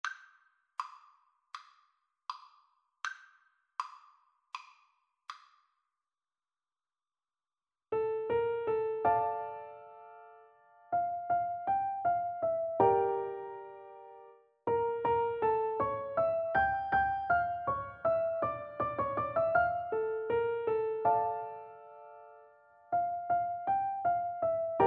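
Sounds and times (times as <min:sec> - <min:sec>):
piano duet: 0:07.9 - 0:24.8.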